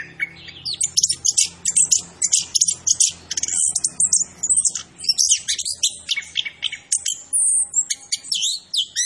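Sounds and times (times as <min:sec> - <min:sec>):
orange-headed thrush singing: 0:00.0 - 0:09.0.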